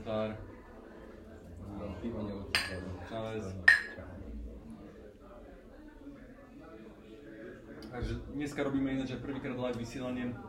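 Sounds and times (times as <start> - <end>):
murmur of voices: 0.0 - 10.4
speech: 0.1 - 0.6, 2.0 - 4.1, 8.0 - 10.4
glasses clinking in a toast: 2.6 - 2.9, 3.6 - 4.0.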